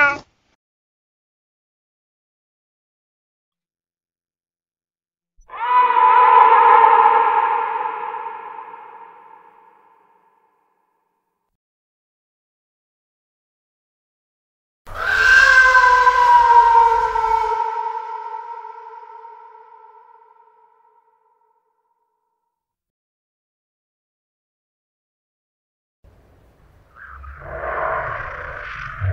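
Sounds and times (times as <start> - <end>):
scary horror cat sound effect: 0.0 - 0.3, 5.5 - 10.6, 14.9 - 21.5, 26.8 - 29.1.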